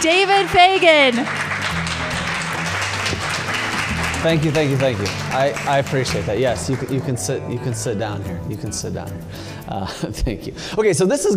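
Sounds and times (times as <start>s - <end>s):
speech: 0.0s - 1.5s, 4.2s - 11.3s
audience round of applause: 0.0s - 7.2s.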